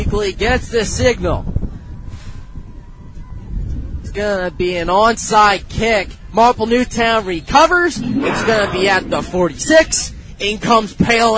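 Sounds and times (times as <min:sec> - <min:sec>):
speech: 0:00.1 - 0:01.5, 0:04.2 - 0:11.3
wind gusting at an outdoor high school football playoff game at Penny Packer Field: 0:07.5 - 0:10.5.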